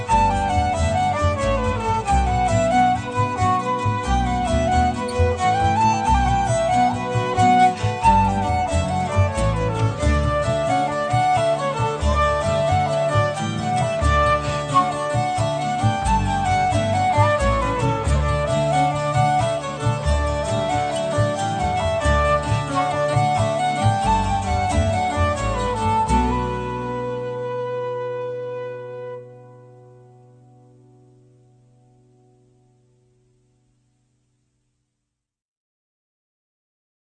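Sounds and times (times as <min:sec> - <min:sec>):
slow slip jig tune: 0:00.0 - 0:28.5.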